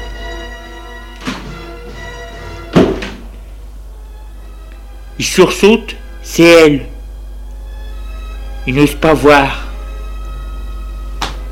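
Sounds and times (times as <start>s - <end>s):
door opening with a thud: 1.2s - 1.8s, 2.7s - 3.3s
speech: 5.2s - 6.9s, 8.7s - 9.6s.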